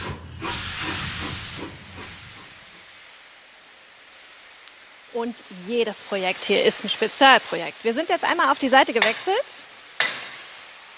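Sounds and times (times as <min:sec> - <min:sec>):
low rumble: 0:00.0 - 0:03.2
steam locomotive hissing: 0:00.0 - 0:10.9
speech: 0:05.2 - 0:09.7.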